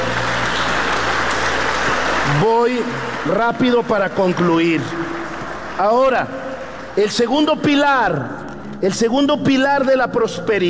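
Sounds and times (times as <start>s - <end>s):
audience applause at a religious gathering of young people: 0.0s - 7.2s
speech: 2.4s - 5.2s, 5.8s - 10.6s.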